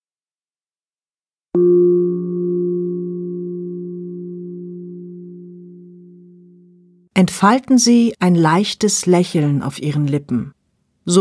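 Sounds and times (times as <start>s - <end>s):
singing bowl gong struck: 1.6s - 6.9s
speech: 7.2s - 11.1s.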